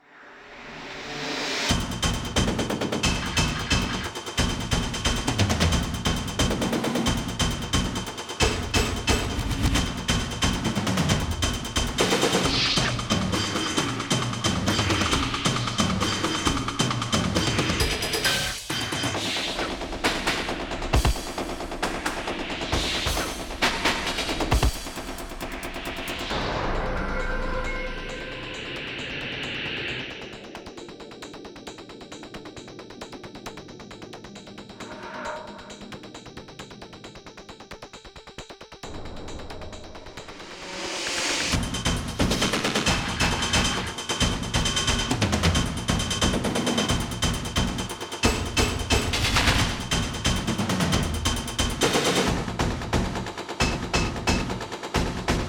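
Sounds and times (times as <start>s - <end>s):
drum mix: 0.8s - 55.4s.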